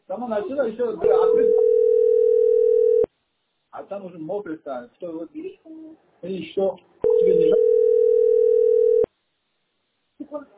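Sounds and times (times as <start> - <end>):
speech: 0.1 - 1.8, 3.8 - 7.6, 10.3 - 10.5
telephone connection tone: 1.0 - 3.1, 7.0 - 9.1.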